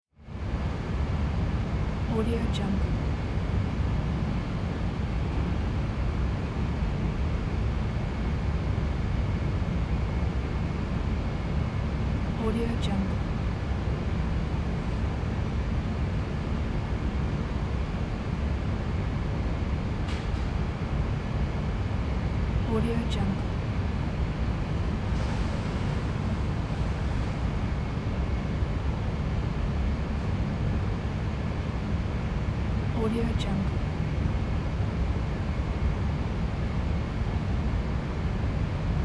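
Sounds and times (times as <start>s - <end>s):
factory room tone: 0.3s - 39.0s.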